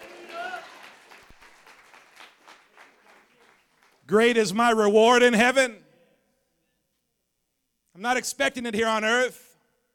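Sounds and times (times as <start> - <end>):
church congregation clapping during an Advent service: 0.0 - 4.5
speech: 4.1 - 5.8, 8.0 - 9.5.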